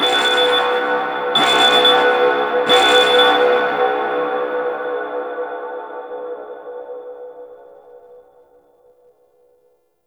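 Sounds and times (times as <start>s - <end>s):
alarm: 0.0s - 5.6s.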